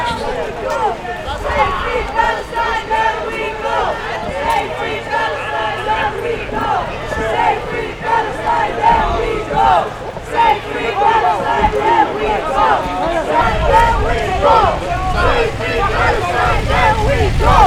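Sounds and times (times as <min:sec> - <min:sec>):
large protest crowd shouting angrily: 0:00.0 - 0:17.6.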